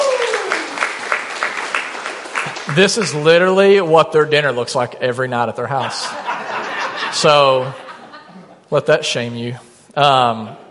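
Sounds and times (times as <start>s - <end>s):
audience round of applause: 0.0s - 3.4s
speech: 2.7s - 6.2s, 7.1s - 7.8s, 8.7s - 10.6s
laughter: 5.7s - 8.7s.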